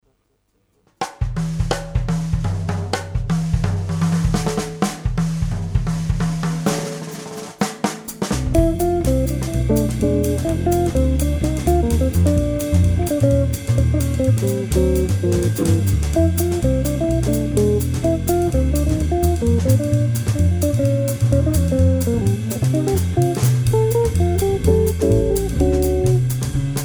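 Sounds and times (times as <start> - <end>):
fast jazz trio: 1.2 - 26.8.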